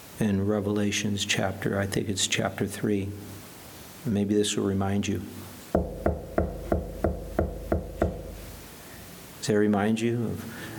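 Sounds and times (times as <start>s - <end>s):
speech: 0.2s - 3.4s, 4.0s - 5.4s, 9.5s - 10.6s
knocking on a door: 5.8s - 8.4s.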